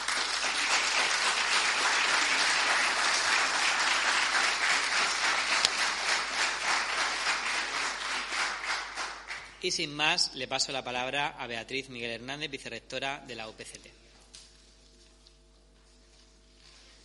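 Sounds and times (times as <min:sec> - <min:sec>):
applause: 0:00.0 - 0:09.7
speech: 0:09.6 - 0:14.0.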